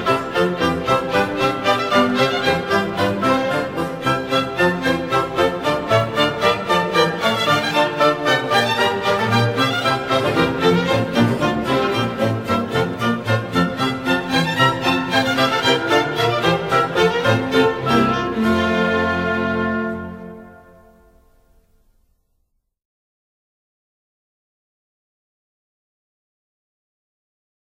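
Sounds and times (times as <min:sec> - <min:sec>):
baroque bourree: 0:00.0 - 0:22.0.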